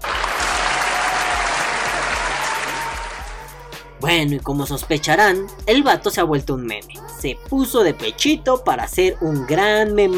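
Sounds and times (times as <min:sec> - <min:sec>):
loud applause from many hands: 0:00.0 - 0:03.5
speech: 0:04.0 - 0:10.1.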